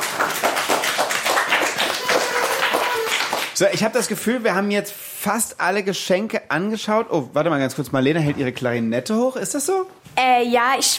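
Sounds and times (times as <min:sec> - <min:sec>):
applause: 0:00.0 - 0:03.8
speech: 0:03.6 - 0:10.9.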